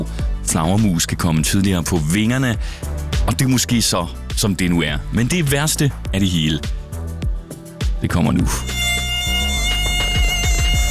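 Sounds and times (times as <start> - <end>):
speech: 0.5 - 6.8, 8.0 - 8.8
mosquitoes buzzing at dusk during a solar eclipse: 8.6 - 10.9.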